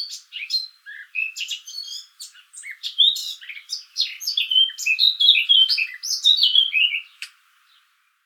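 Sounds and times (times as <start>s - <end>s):
Eurasian blackcap song: 0.0s - 7.9s.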